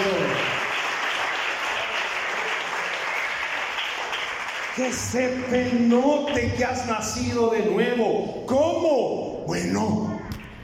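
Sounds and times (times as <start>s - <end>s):
crowd applauding: 0.0s - 6.6s
speech: 4.8s - 10.1s.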